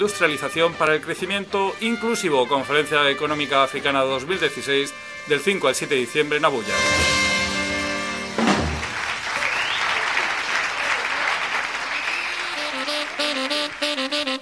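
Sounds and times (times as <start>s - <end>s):
speech: 0.0s - 7.2s
audience applause after a live music performance: 8.4s - 14.3s.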